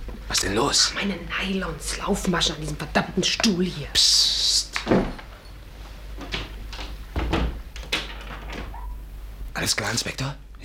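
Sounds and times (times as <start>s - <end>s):
low steady hum: 0.0s - 10.6s
speech: 0.4s - 5.1s, 9.6s - 10.6s
door rattles and clicks: 6.2s - 9.0s.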